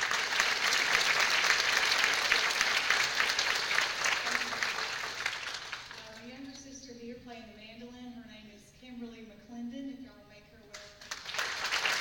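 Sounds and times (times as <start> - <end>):
music performance audience clapping: 0.0 - 6.4, 10.8 - 11.9.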